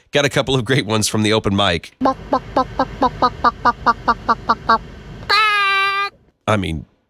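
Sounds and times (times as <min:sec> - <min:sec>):
speech: 0:00.1 - 0:04.9, 0:06.5 - 0:06.9
person imitating chicken clucks and squawk: 0:02.0 - 0:06.2.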